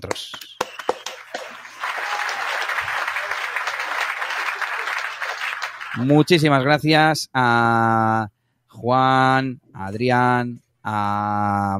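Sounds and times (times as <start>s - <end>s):
speech: 0.0s - 0.4s, 6.0s - 11.7s
applause sound effect: 0.0s - 6.4s.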